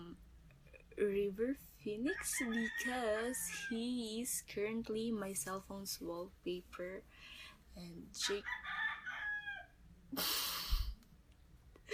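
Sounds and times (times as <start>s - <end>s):
speech: 1.0s - 8.8s, 10.1s - 10.5s
rooster crowing: 2.3s - 3.7s, 8.4s - 9.8s.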